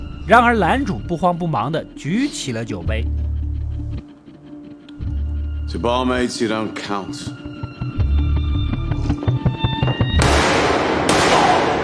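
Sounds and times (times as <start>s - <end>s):
rhythmic music in a British gangster TV drama: 0.0s - 11.3s
speech: 0.3s - 3.2s, 5.7s - 7.4s
gunshots in a British gangster TV drama scene: 10.2s - 11.8s.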